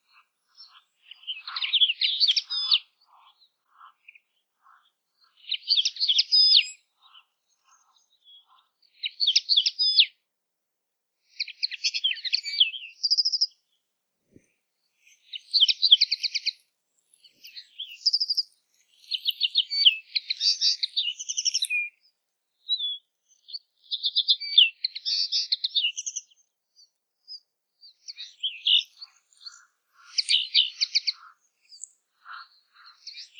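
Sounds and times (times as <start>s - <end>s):
common linnet singing in twittery phrases: 0.0s - 10.2s, 11.3s - 33.3s.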